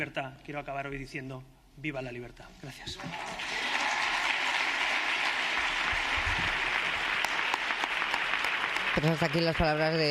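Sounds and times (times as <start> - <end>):
speech: 0.0 - 3.7, 9.0 - 10.0
audience applause: 3.0 - 10.0.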